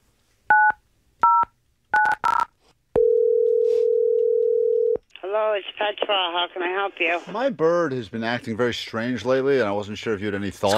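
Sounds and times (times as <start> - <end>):
two-note telephone keypad beeps: 0.5 - 2.5
steady telephone tone: 3.0 - 5.0
speech: 5.6 - 10.7.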